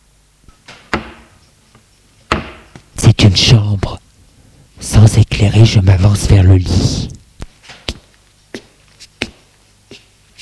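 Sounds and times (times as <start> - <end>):
wooden door knock: 2.3 - 2.6
speech: 3.2 - 4.0, 4.8 - 7.2.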